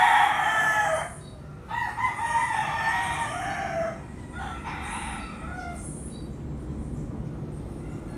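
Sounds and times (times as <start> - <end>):
rooster crowing at dawn in Puerto Rico: 0.0 - 5.9, 7.8 - 8.1.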